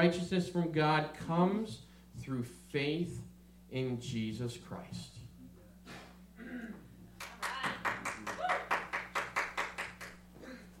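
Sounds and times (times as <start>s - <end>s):
speech: 0.0s - 5.2s
one person clapping: 7.2s - 10.2s.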